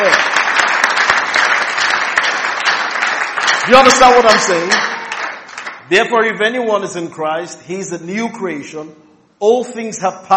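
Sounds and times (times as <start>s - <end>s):
audience clapping: 0.0s - 6.3s
speech: 3.7s - 4.9s, 5.9s - 10.3s.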